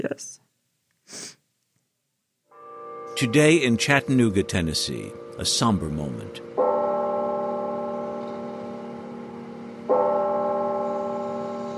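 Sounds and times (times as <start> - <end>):
church bell ringing: 2.5 - 11.7
speech: 3.2 - 6.5.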